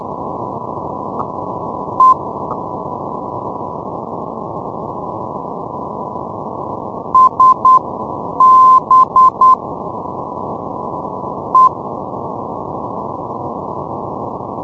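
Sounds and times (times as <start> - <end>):
non-directional radio beacon morse signal: 2.0 - 2.6, 7.2 - 7.8, 8.4 - 9.6.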